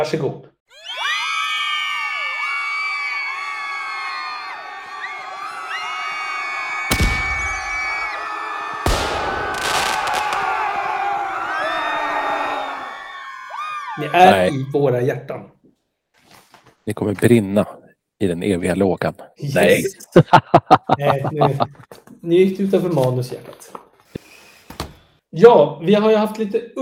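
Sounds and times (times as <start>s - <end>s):
speech: 0.0s - 0.5s, 14.0s - 15.6s, 16.8s - 23.8s, 25.3s - 26.8s
audience cheering and whooping: 0.7s - 14.6s
sharp bangs: 6.9s - 8.0s, 8.9s - 10.7s
laughter: 19.9s - 21.9s.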